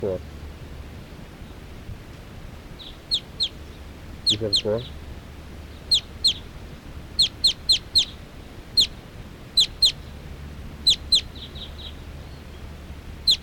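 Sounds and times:
speech: 0.0 - 0.4, 4.3 - 5.0
wild birds chirping: 2.7 - 13.4.

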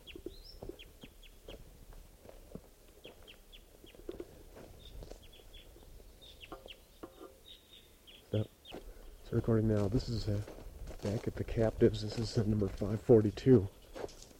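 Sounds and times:
wild bird calling from trees in clucking bursts and chirps: 0.0 - 1.6, 3.0 - 9.1
speech: 9.3 - 13.8.

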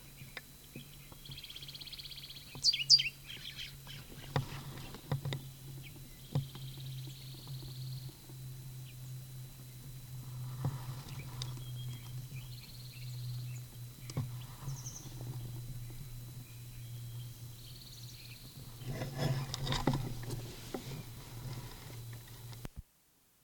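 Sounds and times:
bird chirping in a canyon: 0.0 - 20.3
steady low hum: 0.0 - 22.8.

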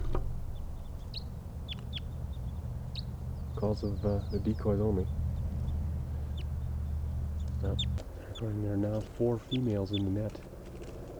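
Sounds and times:
low rumble: 0.0 - 8.9
wild crossbill chip calls: 0.0 - 11.1
speech: 3.6 - 5.2, 7.6 - 10.5.

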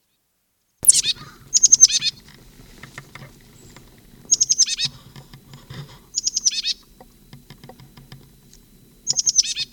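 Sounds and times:
bird calling while foraging in oak: 0.8 - 2.3, 3.1 - 6.9, 9.0 - 9.7.

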